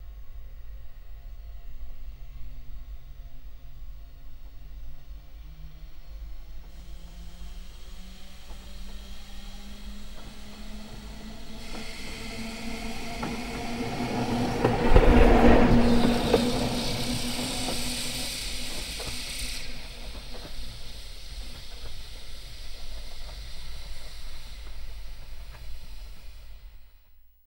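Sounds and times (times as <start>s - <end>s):
electric bus passing by: 0.3s - 26.9s.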